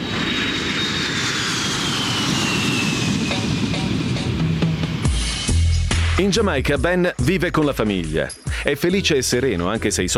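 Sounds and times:
plane from Kingston Jamaica landing in Toronto engines roaring: 0:00.0 - 0:06.2
speech: 0:06.2 - 0:10.1.

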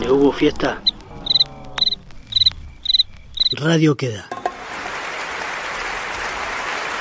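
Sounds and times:
speech: 0:00.1 - 0:00.9, 0:03.6 - 0:04.4
audience clapping to imitate rain: 0:04.4 - 0:07.0.

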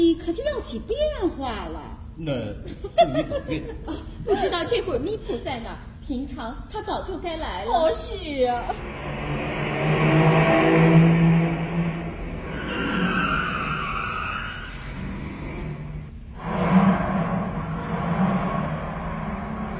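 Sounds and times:
speech: 0:00.2 - 0:09.4
laughter: 0:02.7 - 0:05.1
car driving away: 0:08.7 - 0:19.7.

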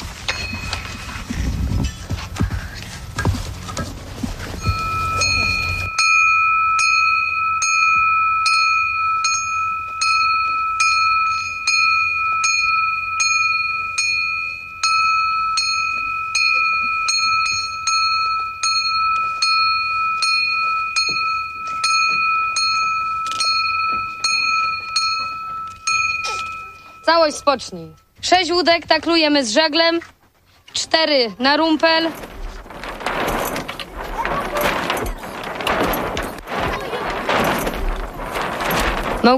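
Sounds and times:
rumbling rustling noise: 0:00.0 - 0:39.3
bright bell struck during a flag raising at an assembly: 0:04.6 - 0:28.0
speech: 0:27.2 - 0:30.2, 0:30.8 - 0:32.3.

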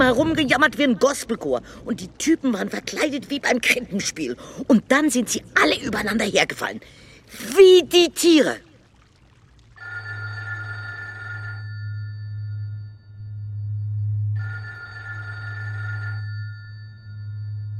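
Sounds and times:
speech: 0:00.0 - 0:08.7
telephone ringing: 0:09.8 - 0:13.0, 0:14.4 - 0:17.7.

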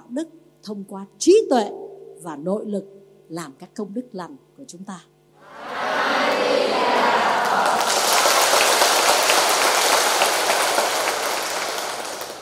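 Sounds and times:
speech: 0:00.2 - 0:05.1
audience of young and old applauding at a Buddhist nun's dharma talk: 0:05.6 - 0:12.4.

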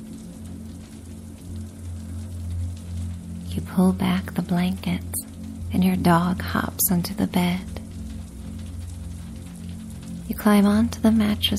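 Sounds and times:
low steady hum: 0:00.0 - 0:11.5
rain trickling down a bedroom window in a city: 0:00.0 - 0:11.5
speech: 0:03.6 - 0:07.8, 0:10.4 - 0:11.5.

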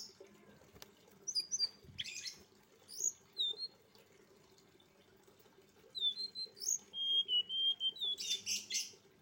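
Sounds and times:
streaked spiderhunter song of high scratchy chirps and rasping bursts: 0:01.3 - 0:03.8, 0:05.9 - 0:09.0.

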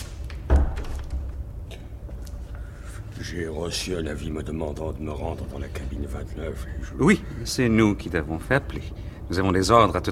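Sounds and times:
door swinging shut with a heavy low thud: 0:00.4 - 0:01.4
speech: 0:03.2 - 0:10.1.

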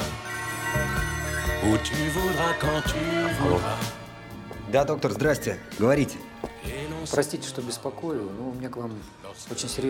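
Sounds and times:
mobile phone ringing: 0:00.1 - 0:03.9
speech: 0:01.6 - 0:04.0, 0:04.7 - 0:06.3, 0:07.1 - 0:09.8.

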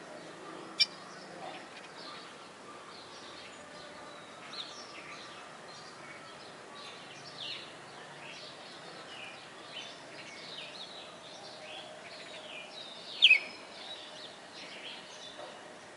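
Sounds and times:
steady background hiss: 0:00.0 - 0:15.9
red-cowled cardinal song of whistled phrases: 0:13.2 - 0:13.5.

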